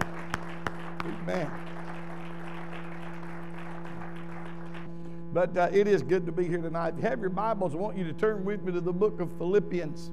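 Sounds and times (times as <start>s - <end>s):
audience hand clapping: 0.0s - 4.9s
speech: 1.3s - 1.7s, 5.3s - 10.1s.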